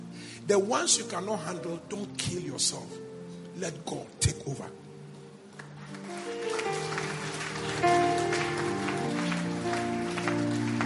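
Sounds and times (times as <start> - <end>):
speech: 0.5 - 4.8
crowd clapping: 5.5 - 10.8.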